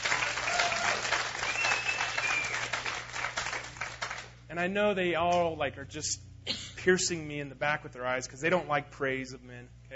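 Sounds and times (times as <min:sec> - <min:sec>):
audience clapping for the band: 0:00.0 - 0:04.4
faint whistle: 0:01.4 - 0:02.7
speech: 0:04.6 - 0:09.9.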